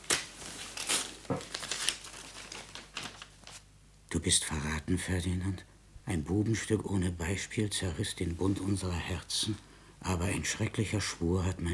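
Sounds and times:
letter being torn open: 0.0s - 3.6s
speech: 4.1s - 11.7s.

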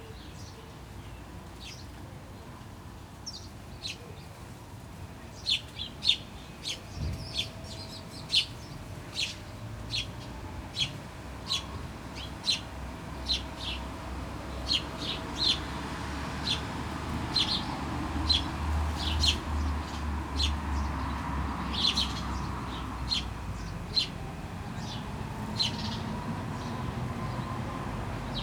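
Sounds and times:
sparrows chirping in a metal sculpture in Jette, Brussels, Belgium: 0.3s - 2.0s, 5.2s - 28.4s.

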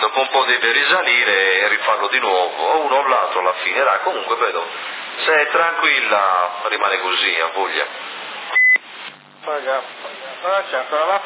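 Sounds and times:
speech: 0.1s - 8.2s, 9.5s - 11.2s
electronic beep on a CB radio channel in Sassari: 8.5s - 9.3s.

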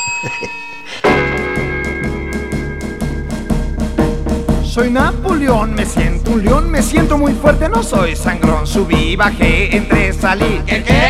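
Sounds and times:
loud bell ringing: 0.0s - 5.0s
speech: 0.2s - 1.2s, 4.8s - 11.0s.

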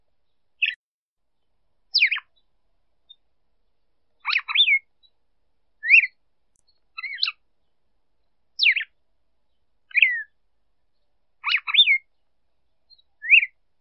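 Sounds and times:
female red-cowled cardinal calling: 0.6s - 0.8s, 1.9s - 2.5s, 4.2s - 5.2s, 5.8s - 10.4s, 11.0s - 13.7s.

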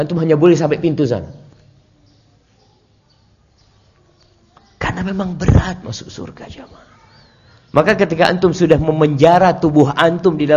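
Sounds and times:
speech: 0.0s - 1.4s, 5.0s - 6.9s, 7.7s - 10.5s
birds chirping outside: 0.0s - 10.5s.

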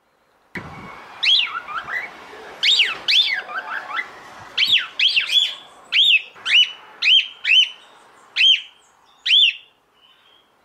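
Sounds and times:
background noise: 0.0s - 10.6s
cockatiel whistling: 0.6s - 7.8s.

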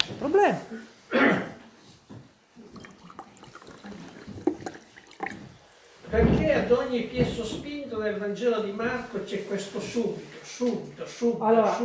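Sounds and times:
liquid splashing: 2.6s - 6.0s
person sipping a drink of water: 2.6s - 6.0s
speech: 6.2s - 11.8s.

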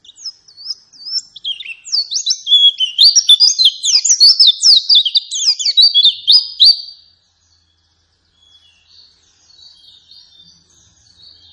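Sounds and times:
white-eye song: 0.0s - 7.0s.

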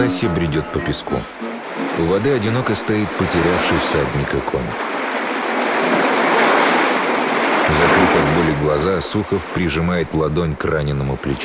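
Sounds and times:
speech: 0.0s - 5.0s, 7.7s - 11.4s
foamy sea waves rolling onto a sandy shore: 0.0s - 11.4s.

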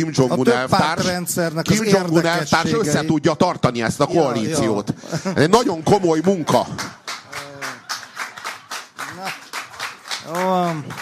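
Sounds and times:
speech: 0.0s - 7.0s, 10.3s - 11.0s
crowd of drunk people clapping: 5.8s - 11.0s.

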